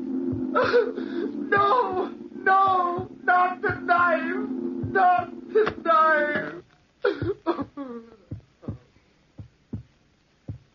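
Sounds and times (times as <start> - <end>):
heart beating, radio drama sound effect: 0.3 - 0.7, 1.5 - 4.1, 4.7 - 10.7
speech: 0.6 - 6.3.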